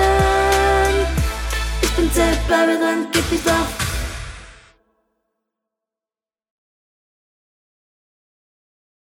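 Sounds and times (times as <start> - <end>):
soprano backing track for video: 0.0 - 4.8.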